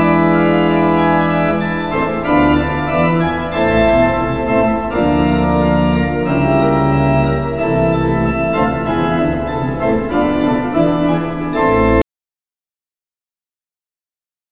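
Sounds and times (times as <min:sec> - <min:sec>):
cathedral organ: 0:00.0 - 0:12.0.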